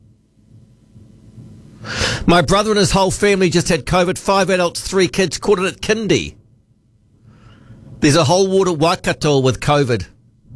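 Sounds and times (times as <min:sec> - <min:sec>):
heavy rain: 0:01.8 - 0:06.4, 0:07.3 - 0:10.5
speech: 0:01.8 - 0:06.4, 0:08.0 - 0:10.1.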